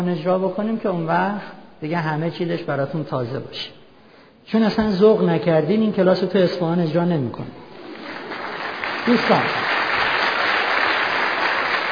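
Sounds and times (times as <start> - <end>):
speech: 0.0 - 3.8, 4.5 - 7.6, 9.0 - 9.8
audience applause at a marriage class: 7.7 - 11.9.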